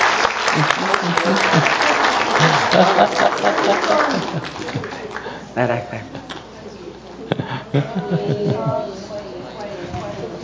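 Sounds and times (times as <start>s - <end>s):
group applause welcoming fellowship leaders: 0.0s - 6.5s
laughter: 0.0s - 6.6s, 7.2s - 9.3s
voices murmuring: 0.0s - 10.4s
speech: 0.6s - 6.4s, 7.7s - 9.0s.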